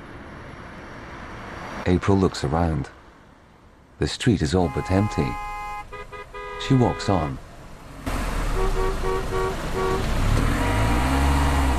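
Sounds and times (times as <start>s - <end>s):
traffic jam rumble: 0.0s - 11.7s
speech: 1.8s - 3.0s, 4.0s - 5.5s, 6.6s - 7.4s
car horn honking: 4.6s - 7.4s, 8.1s - 11.4s
engines revving: 4.7s - 11.7s.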